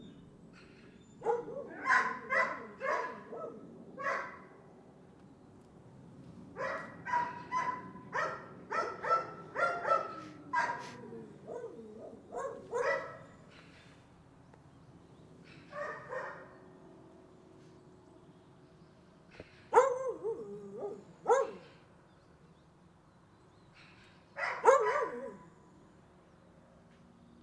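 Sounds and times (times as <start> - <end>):
dog barking: 1.2 - 4.5, 6.6 - 13.3, 15.7 - 16.5, 19.7 - 21.7, 24.4 - 25.5.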